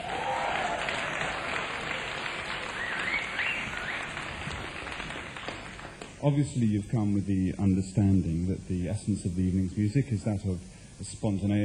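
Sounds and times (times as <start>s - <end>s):
audience clapping: 0.0s - 6.2s
speech: 6.2s - 11.6s.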